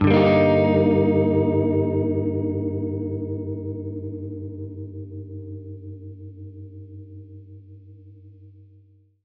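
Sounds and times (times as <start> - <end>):
Gretsch guitar G minor flat six chord: 0.0 - 7.0.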